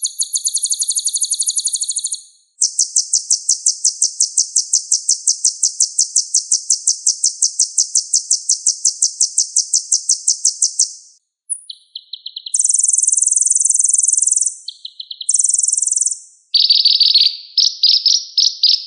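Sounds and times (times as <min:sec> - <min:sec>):
sunbird song: 0:00.0 - 0:18.8.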